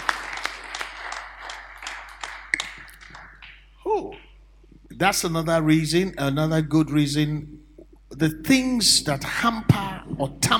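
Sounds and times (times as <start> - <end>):
audience clapping: 0.0 - 3.8
speech: 5.0 - 7.5, 8.2 - 10.5.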